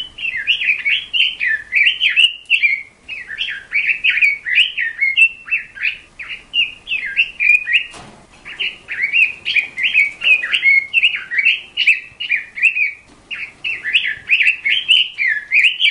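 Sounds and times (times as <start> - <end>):
bird singing: 0.0 - 15.8.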